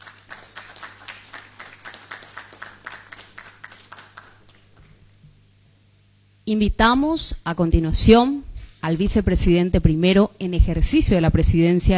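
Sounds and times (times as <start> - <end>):
applause in a parliament chamber: 0.0 - 5.0
speech: 6.5 - 11.9.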